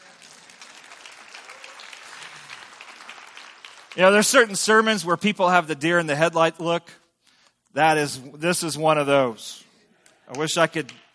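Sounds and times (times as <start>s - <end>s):
audience clapping: 0.0s - 5.0s, 10.1s - 11.1s
speech: 3.9s - 7.0s, 7.7s - 9.6s, 10.3s - 11.0s.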